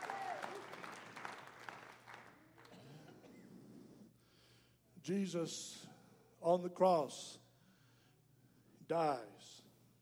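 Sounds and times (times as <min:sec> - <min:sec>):
audience hand clapping: 0:00.0 - 0:02.8
speech: 0:05.0 - 0:07.4, 0:08.9 - 0:09.6.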